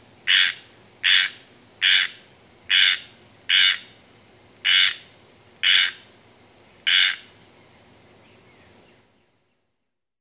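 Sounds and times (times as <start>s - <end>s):
squirrel treefrog calls: 0.2s - 4.0s, 4.6s - 6.1s, 6.8s - 7.4s.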